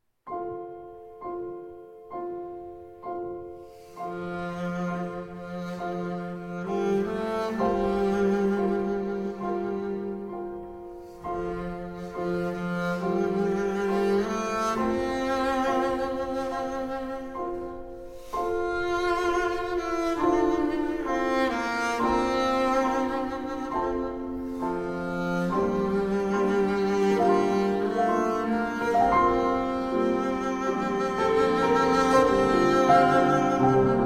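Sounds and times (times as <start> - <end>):
piano: 0.0 - 34.0
double bass: 4.1 - 34.0.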